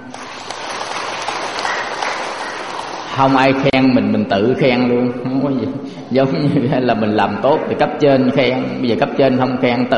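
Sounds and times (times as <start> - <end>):
gathering clapping at a Buddhist temple: 0.0 - 3.7
speech: 3.2 - 9.9.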